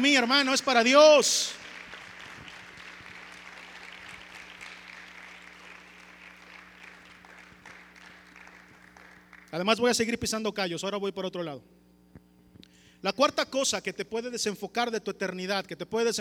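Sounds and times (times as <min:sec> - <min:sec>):
speech: 0:00.0 - 0:01.6, 0:09.5 - 0:11.8, 0:13.0 - 0:16.1
short audience applause: 0:01.4 - 0:09.5.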